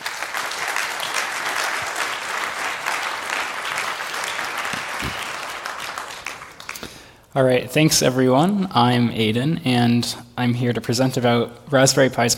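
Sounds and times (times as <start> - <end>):
audience applauding: 0.0 - 7.1
speech: 7.4 - 12.3.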